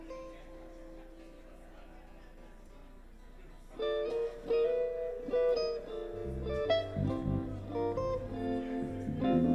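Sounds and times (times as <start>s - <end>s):
instrument tuning: 4.6s - 9.5s.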